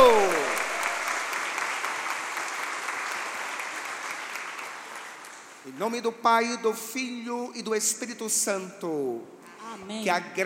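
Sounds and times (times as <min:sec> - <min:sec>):
warm round of applause: 0:00.0 - 0:05.7
speech: 0:05.7 - 0:10.4.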